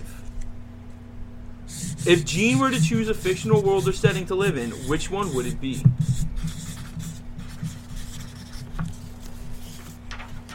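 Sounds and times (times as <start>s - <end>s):
low steady hum: 0.0s - 10.5s
black pen scratching on black paper: 1.7s - 9.8s
speech: 2.0s - 6.2s.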